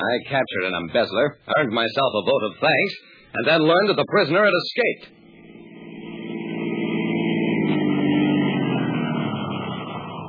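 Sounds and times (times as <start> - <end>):
speech: 0.0 - 5.2
police car pulling up and stopping: 5.1 - 10.2.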